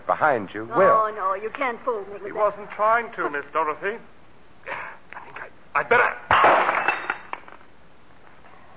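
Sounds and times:
speech: 0:00.1 - 0:04.8, 0:05.8 - 0:06.4
person struck with a glass bottle: 0:06.4 - 0:07.3.

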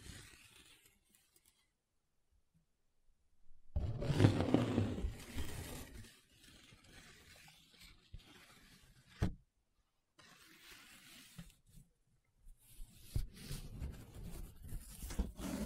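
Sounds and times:
paper rubbed and scratched: 0:00.0 - 0:01.6, 0:03.9 - 0:09.3, 0:10.2 - 0:11.6, 0:12.6 - 0:15.6.

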